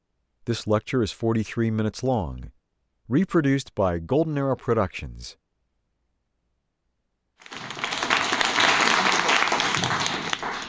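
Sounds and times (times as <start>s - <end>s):
speech: 0.5s - 5.4s
audience applause: 7.4s - 10.6s.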